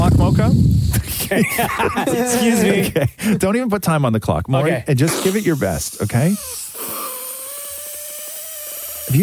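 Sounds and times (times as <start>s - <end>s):
air escaping while blowing up a balloon: 0.4s - 1.4s, 5.0s - 9.2s
laughter: 1.1s - 3.5s
speech: 1.3s - 6.6s.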